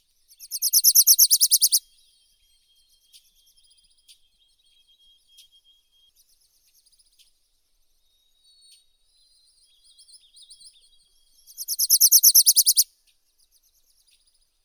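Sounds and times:
Wilson's warbler Wilsonia pusilla singing: 0.4 - 1.8, 11.6 - 12.8.

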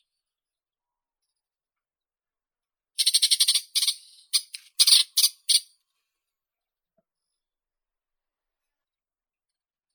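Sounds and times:
isabelline shrike Lanius isabellinus: 3.0 - 5.7.

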